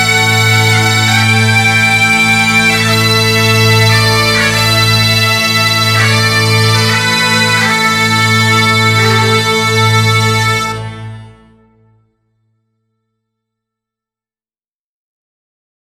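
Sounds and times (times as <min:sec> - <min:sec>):
acoustic highland music: 0:00.0 - 0:12.0.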